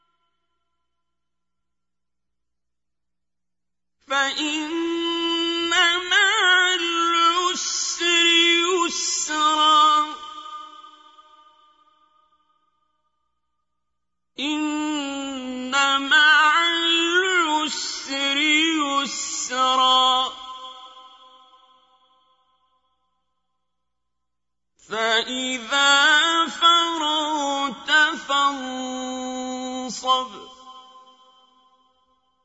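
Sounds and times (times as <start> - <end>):
qari reciting the Quran: 4.0 - 12.1, 14.4 - 22.2, 24.8 - 31.8.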